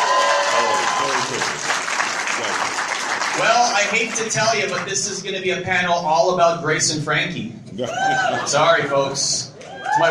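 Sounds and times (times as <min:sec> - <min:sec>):
whoops: 0:00.0 - 0:01.3, 0:07.8 - 0:08.5, 0:09.6 - 0:10.0
crowd clapping and cheering: 0:00.0 - 0:05.1
speech: 0:02.4 - 0:10.0.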